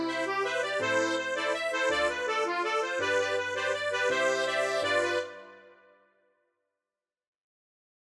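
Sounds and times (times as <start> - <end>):
Scottish mazurka music: 0.0 - 5.9.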